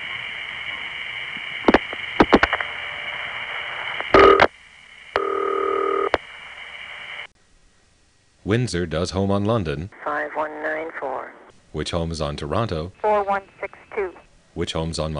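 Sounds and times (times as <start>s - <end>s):
steady telephone trunk tone: 1.7s - 4.5s, 5.1s - 7.3s
speech: 8.5s - 11.1s, 11.8s - 13.8s, 14.6s - 15.1s.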